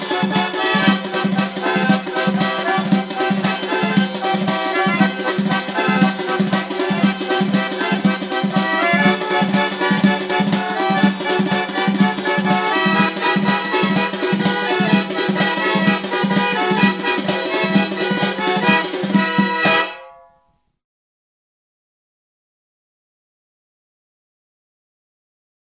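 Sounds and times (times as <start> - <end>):
Georgian folk dance music: 0.0 - 20.2.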